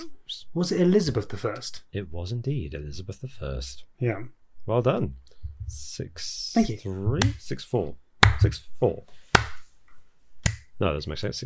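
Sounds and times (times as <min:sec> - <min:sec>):
speech: 0:00.0 - 0:09.5, 0:10.8 - 0:11.4
slow hand clapping: 0:08.2 - 0:08.5, 0:09.3 - 0:09.7, 0:10.4 - 0:10.7.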